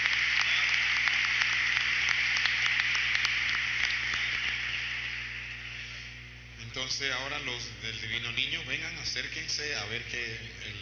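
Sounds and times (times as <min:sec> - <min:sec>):
applause: 0:00.0 - 0:05.8
speech: 0:06.8 - 0:10.8.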